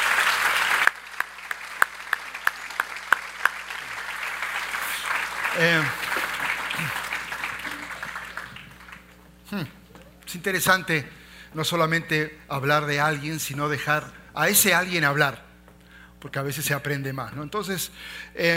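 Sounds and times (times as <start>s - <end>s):
audience applause: 0.0s - 9.2s
speech: 5.6s - 6.1s, 9.5s - 15.5s, 16.2s - 18.5s.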